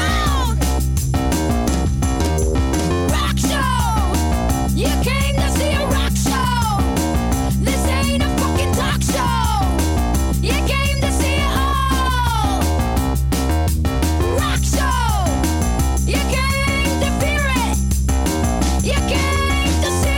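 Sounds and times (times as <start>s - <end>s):
rock music remix: 0.0s - 20.1s.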